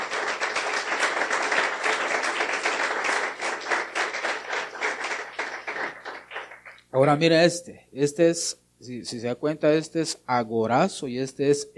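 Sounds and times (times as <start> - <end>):
audience applause: 0.0 - 6.8
speech: 7.0 - 11.7.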